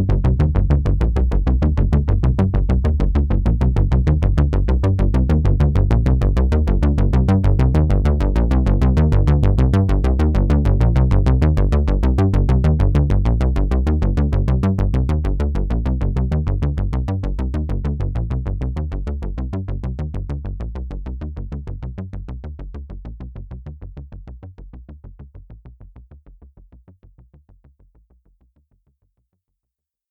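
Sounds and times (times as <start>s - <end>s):
Arturia MatrixBrute synthesizer: 0.0s - 21.9s.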